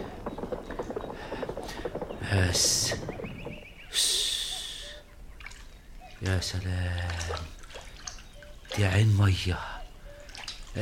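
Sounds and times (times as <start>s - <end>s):
horse hooves clip-clopping in an Arabic radio drama: 0.0s - 3.7s
speech: 2.3s - 3.1s, 3.9s - 4.2s, 6.2s - 7.6s, 8.8s - 9.7s.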